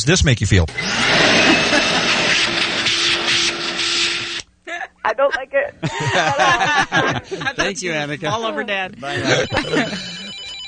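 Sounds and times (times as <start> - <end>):
speech: 0.0 - 1.0, 5.1 - 10.2
vacuum cleaner running: 0.7 - 4.4
laughter: 1.0 - 2.8, 4.7 - 10.6.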